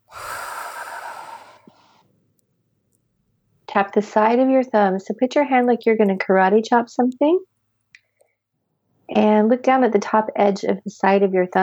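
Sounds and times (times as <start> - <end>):
big breath during an emotional tapping session: 0.0 - 2.0
speech: 3.7 - 7.5, 9.1 - 11.6.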